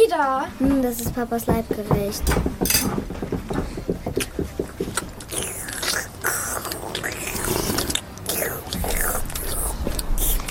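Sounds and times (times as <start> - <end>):
speech: 0.2 - 3.6
slurping lentil soup: 5.2 - 10.4.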